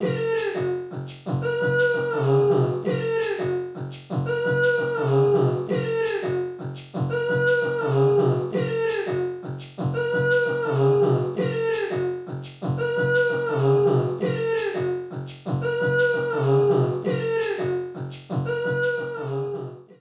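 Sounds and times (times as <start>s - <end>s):
robot running adventure music loops: 0.0s - 19.2s.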